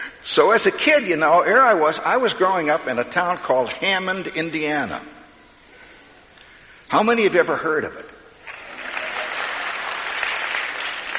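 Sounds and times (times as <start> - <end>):
speech: 0.3 - 5.2, 6.9 - 8.2
audience applause: 8.4 - 11.1.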